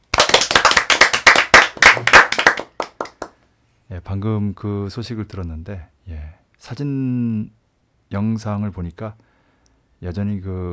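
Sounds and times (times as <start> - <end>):
hands clapping: 0.0 - 3.4
speech: 3.9 - 9.3, 10.0 - 10.7.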